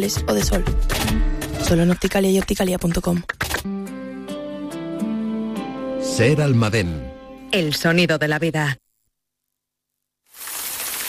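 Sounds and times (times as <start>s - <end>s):
speech: 0.0s - 4.0s, 6.0s - 8.8s
rain: 10.3s - 11.0s.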